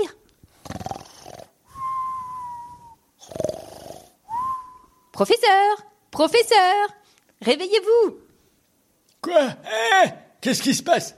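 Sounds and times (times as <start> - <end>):
man snoring: 0.6 - 1.5, 3.2 - 4.2
speech: 5.2 - 8.2, 9.2 - 11.1.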